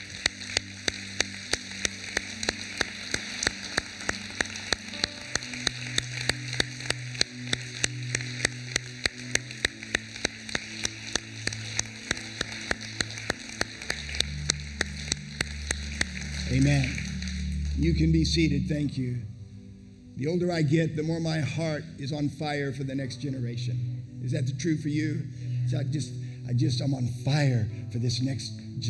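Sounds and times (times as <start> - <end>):
audience applause: 0.0 - 17.8
speech: 17.9 - 19.3, 20.2 - 28.8.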